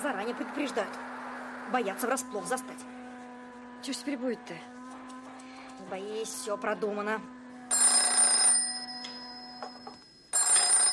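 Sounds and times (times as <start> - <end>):
speech: 0.0 - 3.0, 3.8 - 4.8, 5.8 - 7.8
telephone ringing: 7.7 - 10.9.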